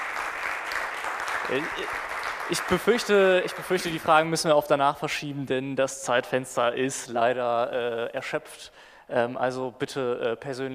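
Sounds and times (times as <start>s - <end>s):
audience applause at the close of a conference talk: 0.0s - 4.0s
speech: 1.5s - 10.7s.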